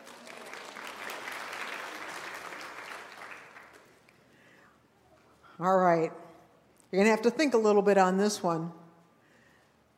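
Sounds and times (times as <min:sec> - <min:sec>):
audience clapping for a participant: 0:00.0 - 0:04.4
speech: 0:05.6 - 0:06.2, 0:06.9 - 0:08.8.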